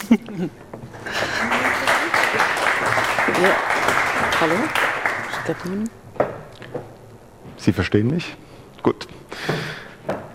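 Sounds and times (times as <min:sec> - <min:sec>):
speech: 0:00.1 - 0:00.9, 0:03.4 - 0:03.8, 0:04.4 - 0:04.9, 0:05.5 - 0:06.0, 0:07.6 - 0:09.1
audience applause: 0:01.0 - 0:05.9.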